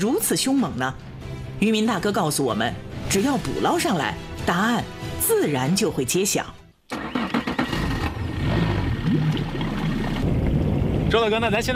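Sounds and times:
speech: 0.0s - 6.6s, 11.1s - 11.7s
water noise: 7.1s - 11.7s
rushing wind: 7.6s - 11.7s.

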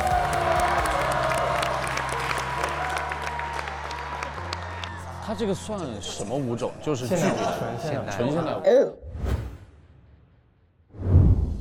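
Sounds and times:
large audience applause: 0.0s - 6.1s
speech: 5.3s - 9.0s
laughter: 6.9s - 8.6s.

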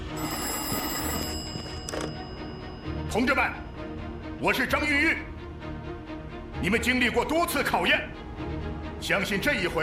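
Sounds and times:
telephone bell ringing: 0.1s - 4.1s
speech: 3.1s - 3.7s, 4.4s - 5.3s, 6.6s - 8.2s, 9.0s - 9.8s.

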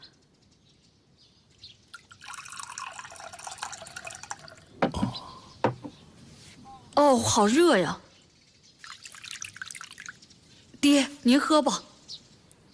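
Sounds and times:
water being poured for drinking: 1.9s - 4.8s, 8.8s - 10.2s
speech: 7.1s - 8.0s, 10.9s - 11.9s.

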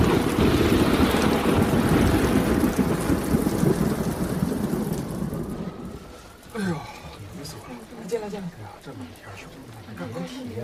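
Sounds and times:
roaring typhoon wind in Yuhang: 0.0s - 6.6s
heavy typhoon rain pounding in Yuhang: 0.0s - 10.6s.

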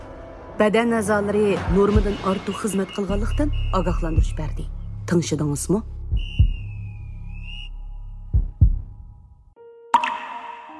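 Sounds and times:
speech: 0.6s - 6.3s
thin sustained whistling tone: 2.5s - 4.4s, 6.2s - 7.9s
water drops dripping: 9.9s - 10.7s.

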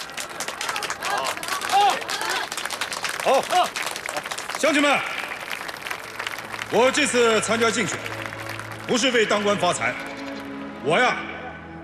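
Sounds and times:
crowd applauding: 0.0s - 10.6s
speech: 3.2s - 3.8s, 4.6s - 5.1s, 6.7s - 8.2s, 8.9s - 10.1s, 10.8s - 11.3s.

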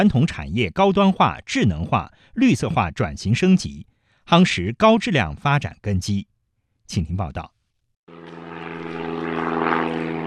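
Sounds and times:
speech: 0.0s - 6.3s, 6.9s - 7.5s
propeller engine of a 7-tonne large cargo drone in flight: 8.1s - 10.2s.

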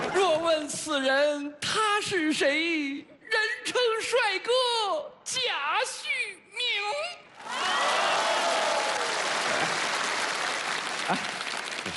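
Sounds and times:
speech: 0.6s - 8.4s, 11.1s - 11.3s
audience applause: 7.4s - 11.9s.

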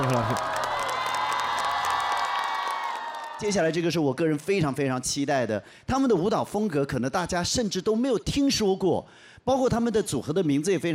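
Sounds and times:
speech: 0.0s - 0.6s, 3.4s - 10.9s
audience applause for a dance performer on a dance show: 0.0s - 3.6s
crowd shouts and whoops: 0.0s - 3.6s.

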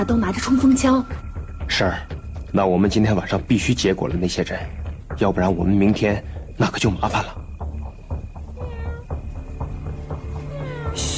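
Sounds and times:
speech: 0.0s - 7.4s
person imitating a cat's meow: 10.5s - 11.1s.

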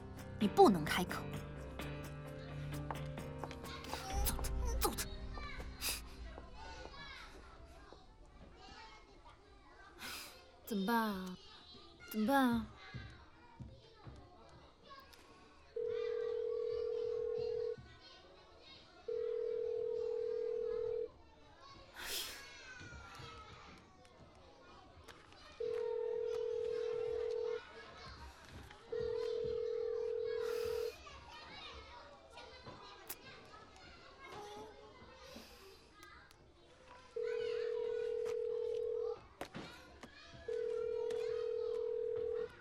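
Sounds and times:
children playing and chattering: 0.0s - 42.5s
speech: 0.4s - 1.4s, 10.7s - 11.4s, 12.1s - 12.8s
phone ringback tone ringing unanswered: 15.8s - 17.8s, 19.1s - 21.1s, 25.6s - 27.6s, 28.9s - 30.9s, 37.2s - 39.2s, 40.5s - 42.5s.

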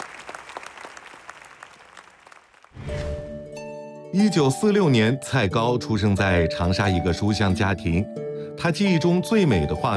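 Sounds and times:
sustained audience applause: 0.0s - 2.8s
speech: 4.1s - 9.9s.

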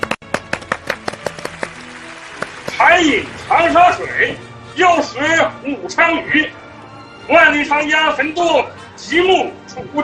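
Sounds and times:
audience applause welcoming a poem recitation: 0.0s - 3.8s
speech: 2.9s - 6.6s, 7.3s - 10.0s.

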